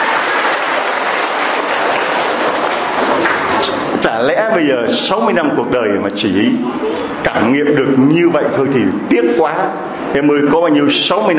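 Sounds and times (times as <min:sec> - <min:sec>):
crowd applause: 0:00.0 - 0:03.9
speech: 0:04.0 - 0:11.3.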